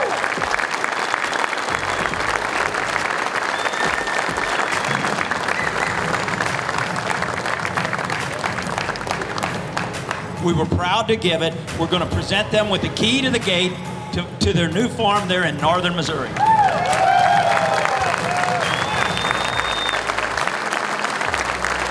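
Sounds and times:
audience applause: 0.0 - 10.4, 16.4 - 21.8
speech: 10.4 - 16.5.

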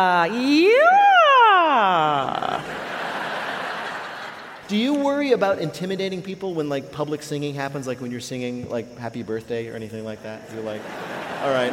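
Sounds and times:
speech: 0.0 - 1.1, 4.7 - 11.7
voice imitating a siren: 0.0 - 2.6
laughter: 2.2 - 4.7, 10.5 - 11.7.

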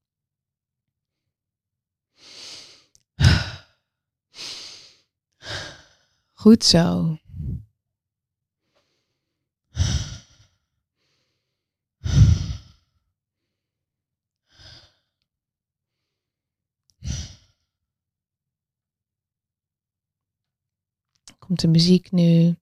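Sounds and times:
slow deep breathing in through the nose and out through the mouth: 2.1 - 6.3, 8.6 - 13.8, 14.4 - 15.2, 17.0 - 17.8
speech: 6.4 - 7.2, 21.5 - 22.6.

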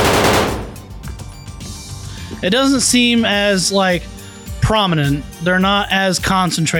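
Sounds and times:
heavy machine gun bullets hitting brick walls: 0.0 - 1.1
speech: 2.4 - 6.7.

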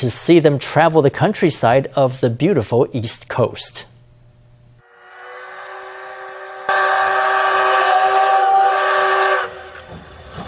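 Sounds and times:
speech: 0.0 - 3.9
steam locomotive horn on East Coast Railway: 4.8 - 9.8.

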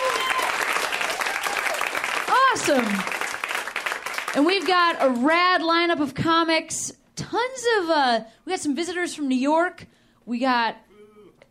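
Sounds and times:
audience clapping: 0.0 - 5.7
speech: 2.6 - 3.2, 4.4 - 10.8.

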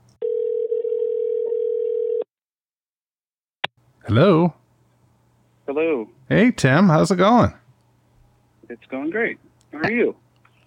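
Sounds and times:
telephone dial tone: 0.2 - 2.3
speech: 4.1 - 4.6, 5.7 - 7.6, 8.7 - 10.6.

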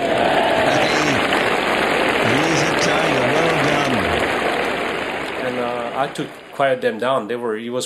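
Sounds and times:
laughter: 0.0 - 4.4, 5.4 - 6.3
golf crowd clapping: 0.0 - 7.4
speech: 6.0 - 7.8.

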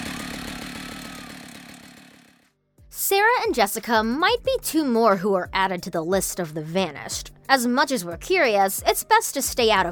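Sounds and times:
chainsaw engine roaring: 0.0 - 2.5
speech: 3.0 - 9.9.

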